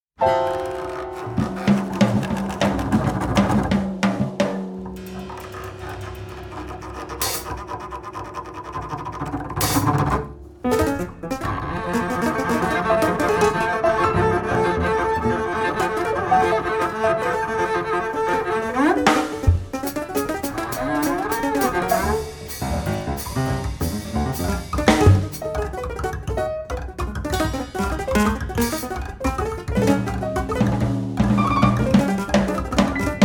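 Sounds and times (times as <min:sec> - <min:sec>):
piano trio: 0:00.2 - 0:33.2.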